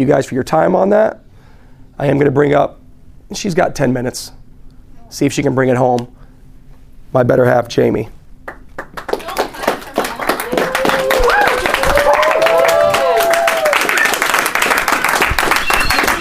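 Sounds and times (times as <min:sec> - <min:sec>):
speech: 0:00.0 - 0:01.2, 0:02.0 - 0:04.4, 0:05.1 - 0:06.2, 0:07.1 - 0:08.2
audience clapping: 0:08.4 - 0:16.1.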